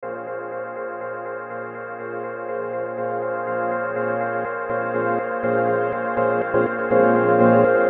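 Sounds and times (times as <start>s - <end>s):
music loop: 2.1s - 7.8s.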